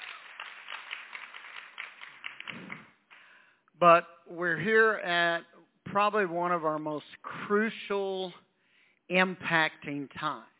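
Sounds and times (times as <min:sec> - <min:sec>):
audience applause: 0:00.0 - 0:03.0
speech: 0:03.8 - 0:08.4, 0:09.1 - 0:10.5.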